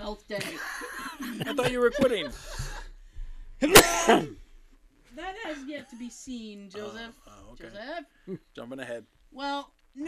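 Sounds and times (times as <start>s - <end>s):
speech: 0.1s - 2.8s, 3.6s - 4.4s, 5.2s - 10.0s
man sneezing: 3.6s - 4.4s.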